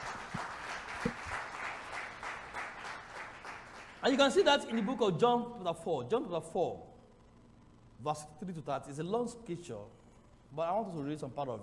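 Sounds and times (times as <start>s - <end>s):
audience clapping: 0.0s - 5.2s
speech: 4.0s - 6.9s, 8.0s - 11.6s.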